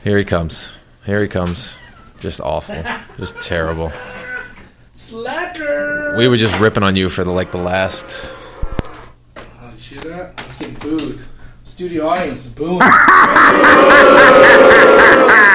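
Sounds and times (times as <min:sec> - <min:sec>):
speech: 0:00.0 - 0:04.2, 0:05.0 - 0:08.4, 0:10.0 - 0:15.5
laughter: 0:02.7 - 0:04.6, 0:12.8 - 0:15.5
studio audience booing sound effect: 0:12.9 - 0:15.5.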